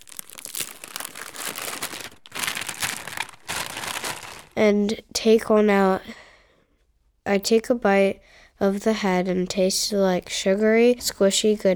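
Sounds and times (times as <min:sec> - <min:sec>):
plastic and cardboard packaging of Peeps marshmallow candy being torn open: 0:00.0 - 0:04.6
speech: 0:04.6 - 0:06.2, 0:07.3 - 0:11.7.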